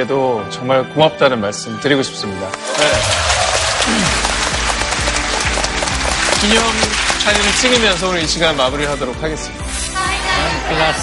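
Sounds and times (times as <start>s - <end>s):
speech: 0.0s - 3.3s, 3.9s - 4.3s, 6.4s - 9.7s, 10.7s - 11.0s
sustained applause from a large audience: 2.6s - 8.8s.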